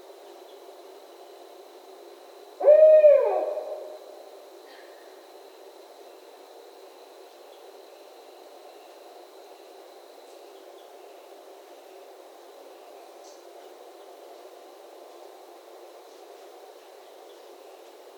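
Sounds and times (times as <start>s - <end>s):
barred owl hooting: 2.6s - 4.2s.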